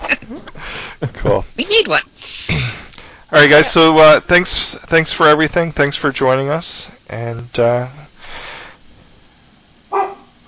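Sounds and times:
speech: 0.1s - 2.1s, 3.3s - 8.0s
dog barking: 9.9s - 10.4s.

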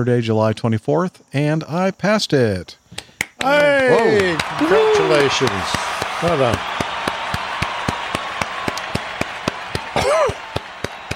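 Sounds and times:
speech: 0.0s - 2.8s, 3.4s - 6.7s
applause: 3.2s - 11.1s
whoop or whistle: 3.4s - 11.1s.

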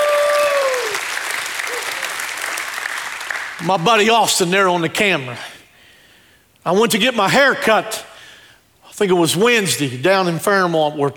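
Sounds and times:
audience shouting praise: 0.0s - 2.5s
audience clapping hands: 0.0s - 4.1s
speech: 3.6s - 5.5s, 6.6s - 8.1s, 9.0s - 11.1s.

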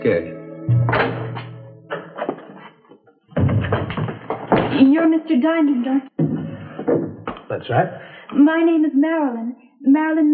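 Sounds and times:
speech: 0.0s - 1.2s, 5.0s - 6.2s, 6.9s - 10.3s
door pushed shut: 0.8s - 1.5s, 3.4s - 5.0s.

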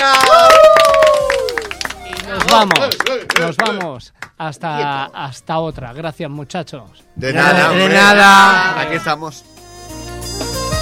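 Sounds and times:
long loud cheering shout: 0.0s - 1.6s
applause: 0.0s - 4.4s
speech: 2.5s - 9.6s.

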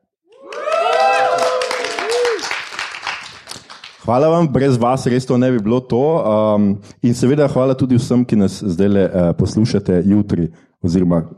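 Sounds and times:
live audience whooping and cheering at the Kinoteka cinema in Ljubljana: 0.3s - 3.5s
live audience clapping at the Kinoteka cinema in Ljubljana: 0.3s - 4.3s
speech: 4.1s - 11.3s.

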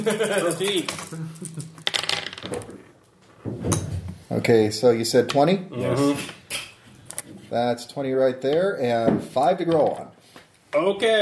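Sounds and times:
speech: 0.0s - 1.6s, 4.3s - 6.4s, 7.5s - 10.1s, 10.7s - 11.2s
dice clattering onto a hard floor: 0.2s - 2.8s.

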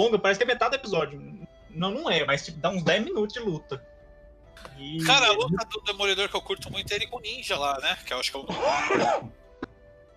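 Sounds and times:
speech: 0.0s - 3.9s, 4.6s - 9.4s
sneeze: 8.5s - 9.3s.

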